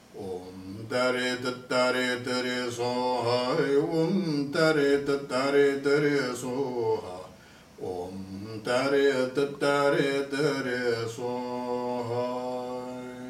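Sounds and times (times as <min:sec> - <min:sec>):
mantra chanting: 0:00.0 - 0:13.2.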